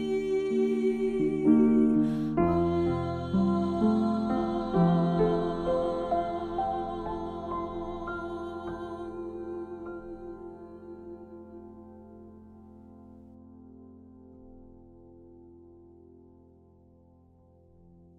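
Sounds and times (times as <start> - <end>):
soprano singing: 0.0 - 12.1.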